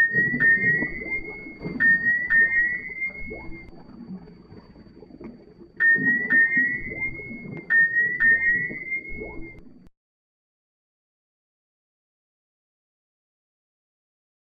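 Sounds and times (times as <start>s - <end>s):
synthesized whale sounds: 0.0s - 9.9s.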